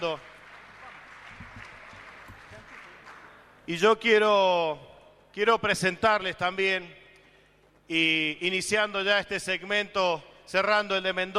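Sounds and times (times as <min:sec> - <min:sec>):
speech: 0:00.0 - 0:00.3, 0:03.7 - 0:07.0, 0:07.9 - 0:11.3
audience applauding: 0:00.0 - 0:03.6.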